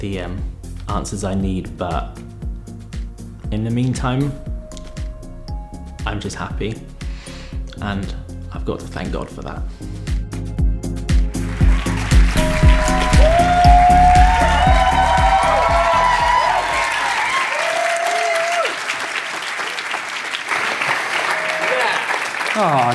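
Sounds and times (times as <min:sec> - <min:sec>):
speech: 0:00.0 - 0:02.3, 0:03.5 - 0:04.5, 0:06.0 - 0:06.9, 0:07.8 - 0:10.1, 0:22.6 - 0:22.9
audience clapping: 0:11.1 - 0:22.9.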